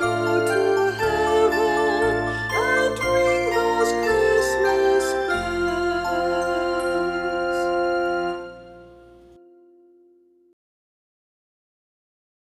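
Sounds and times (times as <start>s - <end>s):
christmas bells: 0.0s - 9.4s.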